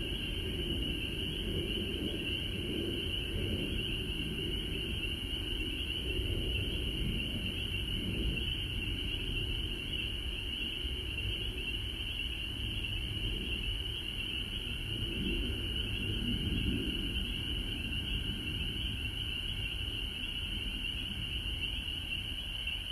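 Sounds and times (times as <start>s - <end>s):
frogs in Georgia: 0.0s - 22.8s.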